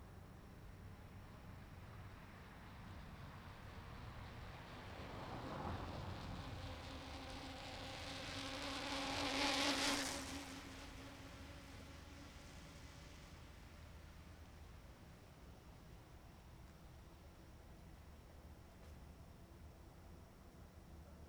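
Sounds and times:
very distant traffic: 0:00.1 - 0:21.2
bicycle passing: 0:00.2 - 0:18.1
car passing: 0:01.0 - 0:17.0.

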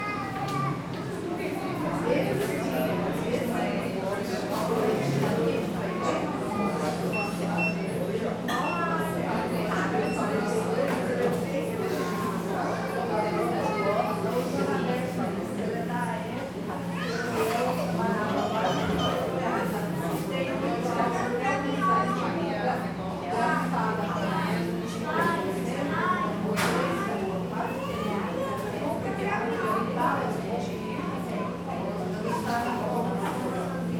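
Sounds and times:
child in a bakery: 0:00.0 - 0:01.1, 0:26.1 - 0:28.7
murmur of voices inside a bakery: 0:00.0 - 0:33.9.

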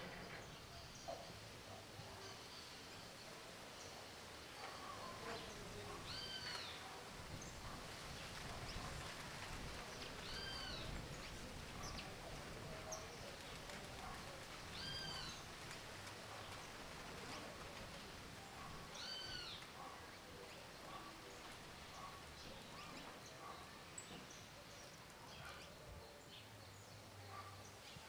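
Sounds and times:
residential village street ambience with domestic sounds: 0:00.0 - 0:28.0.

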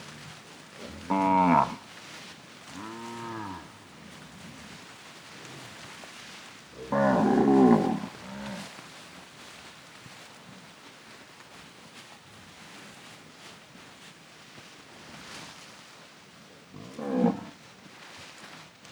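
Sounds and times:
cattle grazing on grass mooing: 0:00.8 - 0:01.8, 0:02.8 - 0:03.7, 0:06.8 - 0:08.7.

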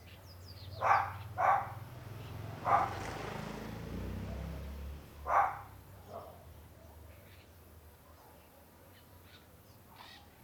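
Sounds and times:
small dog barking near a corridor: 0:00.8 - 0:01.8, 0:02.6 - 0:03.1, 0:05.3 - 0:06.4.

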